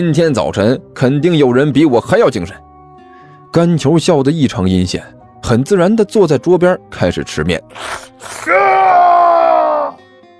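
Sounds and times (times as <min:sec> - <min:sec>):
speech: 0:00.0 - 0:02.7, 0:03.5 - 0:09.0
shrill scream of pain: 0:07.8 - 0:10.0.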